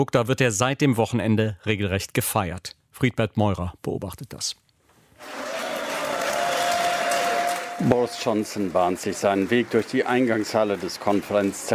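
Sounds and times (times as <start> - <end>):
speech: 0.0 - 4.6, 7.8 - 11.7
Tory party conference delegates applauding and cheering in Manchester: 5.1 - 11.7.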